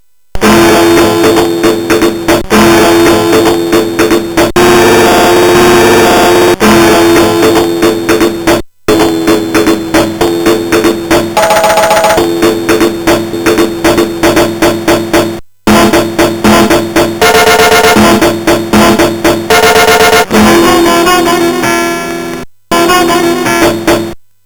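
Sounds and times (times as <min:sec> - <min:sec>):
MOS6581R3 synthesizer chip sound: 0:00.4 - 0:24.2.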